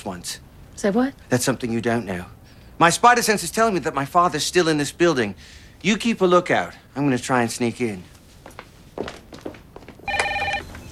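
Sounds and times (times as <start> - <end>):
speech: 0.0 - 8.2
soft thumps and footstep-like knocks: 8.0 - 10.8
telephone ringing: 10.0 - 10.8.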